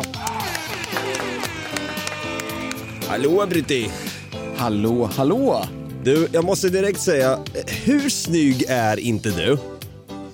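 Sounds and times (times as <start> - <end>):
people clapping: 0.0 - 4.3
bright brassy horn notes over a steady rhythmic beat: 0.4 - 3.6
speech: 3.1 - 9.7.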